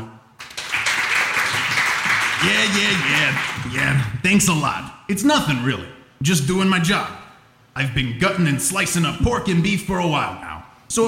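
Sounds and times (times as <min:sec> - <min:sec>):
audience applause: 0:00.4 - 0:04.2
speech: 0:02.4 - 0:07.2, 0:07.8 - 0:11.0.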